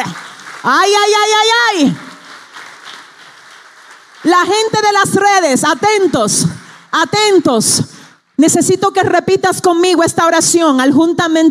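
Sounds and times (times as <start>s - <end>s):
speech: 0.0s - 2.0s, 4.2s - 11.4s
church audience applause: 0.0s - 6.9s.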